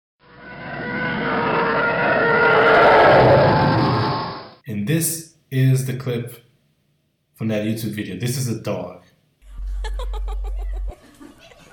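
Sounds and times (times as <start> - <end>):
TIE Fighter engine sound effect: 0.2 - 4.6
speech: 4.9 - 6.5, 7.4 - 9.0
laughter: 9.5 - 11.7.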